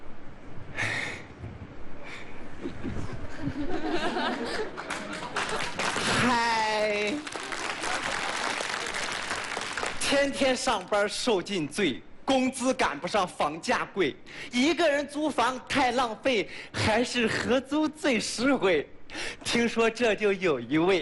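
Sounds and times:
scattered laughter: 2.6s - 5.9s
audience applause: 4.4s - 10.9s
speech: 10.2s - 21.0s.

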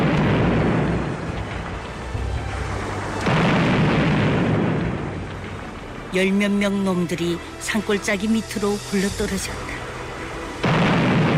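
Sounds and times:
hand grenade explosions: 0.0s - 1.8s, 3.2s - 5.5s, 10.6s - 11.3s
speech: 6.2s - 9.9s.

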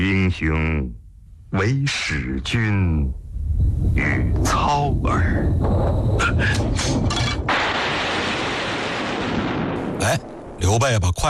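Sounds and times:
speech: 0.0s - 7.4s, 10.0s - 11.2s
thunderclap crackling and rumbling: 3.4s - 11.0s.

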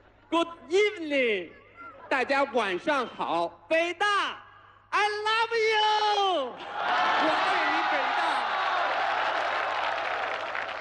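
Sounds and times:
speech: 0.3s - 8.4s
audience applause at an evening event at Peking University: 6.9s - 10.8s.

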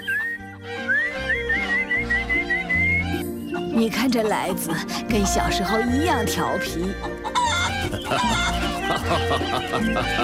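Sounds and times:
person whistling to lure birds: 0.0s - 3.7s
speech: 3.8s - 7.2s, 8.0s - 8.4s, 9.0s - 10.2s
laughter: 7.0s - 10.2s.

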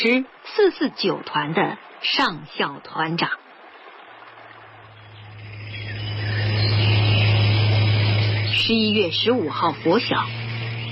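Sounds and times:
speech: 0.0s - 3.4s, 8.6s - 10.4s
tank engines roaring: 3.8s - 10.9s.

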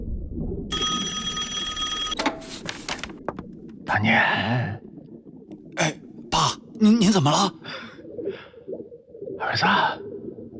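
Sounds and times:
telephone ringing: 0.7s - 2.6s
speech: 3.9s - 4.8s, 5.8s - 6.0s, 6.8s - 7.9s, 9.4s - 10.0s.

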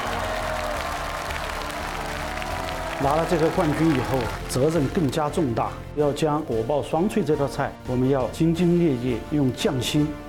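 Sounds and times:
audience applause at a hometown cooking competition: 0.0s - 5.2s
speech: 3.0s - 10.2s.

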